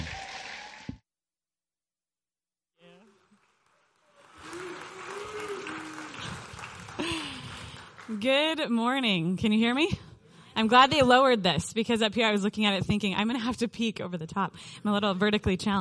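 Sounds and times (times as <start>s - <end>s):
scattered cheering voices: 0.0s - 0.9s, 2.8s - 7.1s
crowd applause: 0.0s - 1.0s, 2.8s - 8.3s
speech: 8.1s - 15.7s.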